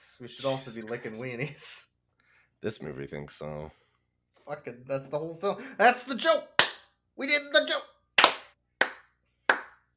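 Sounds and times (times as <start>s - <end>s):
speech: 0.2s - 1.9s, 2.6s - 3.8s, 4.4s - 6.5s, 7.2s - 7.9s
sharp hand claps: 6.6s - 6.9s, 8.2s - 9.9s.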